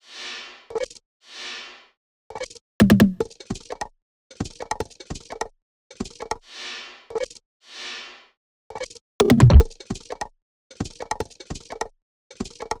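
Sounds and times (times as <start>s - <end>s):
percussion loop: 2.8s - 3.2s, 9.2s - 9.7s.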